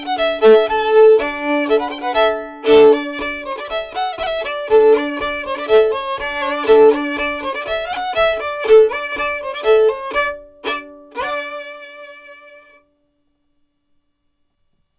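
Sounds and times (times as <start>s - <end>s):
polka piquée music: 0.0s - 10.2s.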